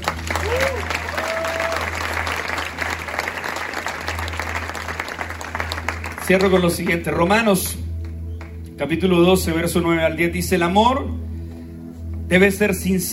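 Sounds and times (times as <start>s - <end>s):
audience applause: 0.0s - 6.8s
speech: 6.3s - 7.8s, 8.8s - 11.3s, 12.3s - 13.1s.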